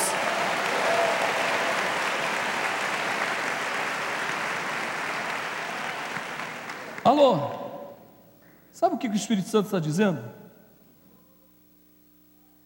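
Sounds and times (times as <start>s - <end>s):
audience applause: 0.0s - 7.2s
speech: 7.1s - 7.6s, 8.8s - 10.4s.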